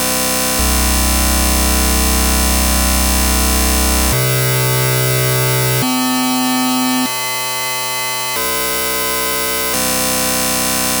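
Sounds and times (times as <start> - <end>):
random square and saw synthesizer pulses: 0.0 - 10.9.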